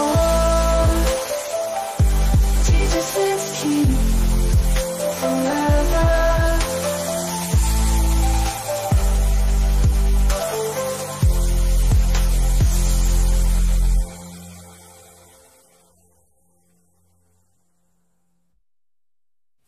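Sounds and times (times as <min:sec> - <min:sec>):
electro pop Christian music: 0:00.0 - 0:15.4.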